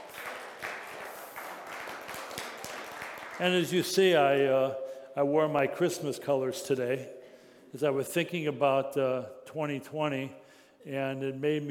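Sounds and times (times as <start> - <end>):
round of applause: 0.0 - 3.6
speech: 3.4 - 11.7.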